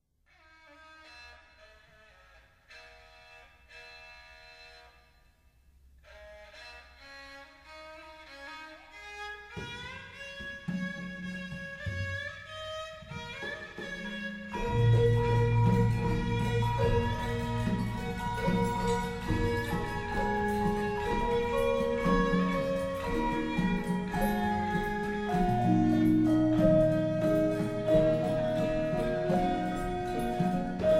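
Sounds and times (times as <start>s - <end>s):
Javanese gamelan music: 10.7s - 30.9s.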